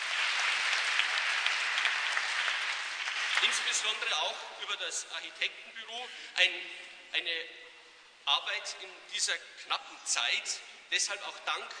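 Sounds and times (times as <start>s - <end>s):
audience applause: 0.0s - 4.1s
speech: 3.4s - 7.6s, 8.2s - 11.7s.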